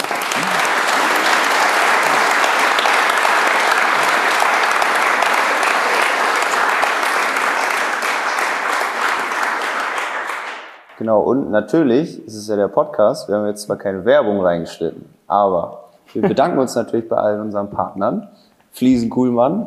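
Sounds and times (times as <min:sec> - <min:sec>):
applause: 0:00.0 - 0:11.0
speech: 0:11.1 - 0:19.6.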